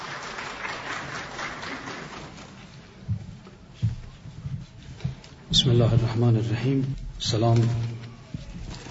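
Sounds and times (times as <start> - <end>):
audience applause: 0.0 - 2.9
speech: 5.6 - 8.0.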